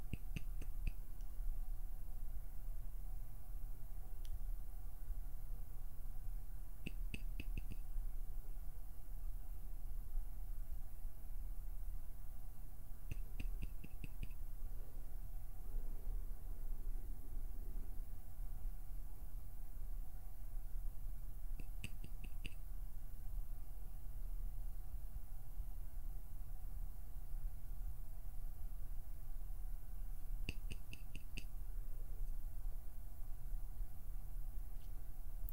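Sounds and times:
fingers plucking, pinching and fluttering: 0.0 - 1.0, 6.8 - 7.9, 13.1 - 14.4, 21.6 - 22.6, 30.4 - 31.5
steady low hum with faint constant tone: 0.0 - 35.5.

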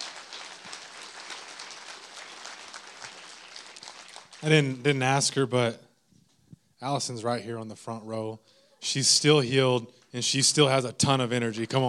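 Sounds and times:
crowd clapping: 0.0 - 4.9, 11.4 - 11.8
speech: 4.4 - 5.8, 6.8 - 11.8.

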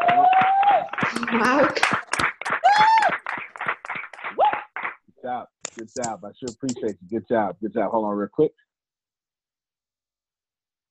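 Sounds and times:
group clapping over unmuted mics: 0.0 - 6.9
speech: 1.3 - 2.0, 6.0 - 8.6.

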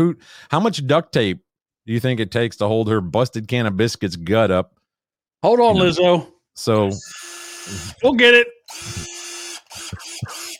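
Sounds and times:
speech: 0.0 - 4.8, 5.4 - 9.1
power drill whirring: 7.0 - 8.1, 8.7 - 10.5.

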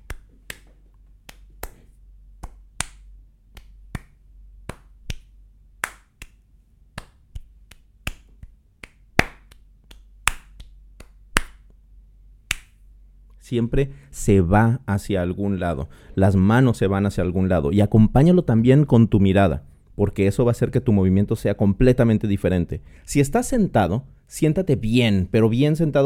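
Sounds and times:
rhythmic hand clapping in flamenco palmas style: 0.0 - 11.8, 12.5 - 12.8
speech: 13.5 - 26.0.

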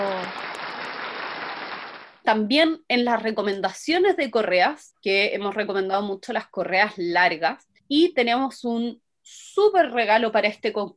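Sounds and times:
applause: 0.0 - 2.2
speech: 2.3 - 10.9.

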